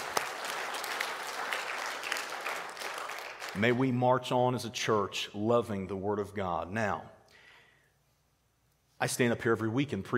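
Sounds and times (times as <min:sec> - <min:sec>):
audience clapping hands: 0:00.0 - 0:04.0
speech: 0:03.6 - 0:07.2, 0:09.0 - 0:10.1.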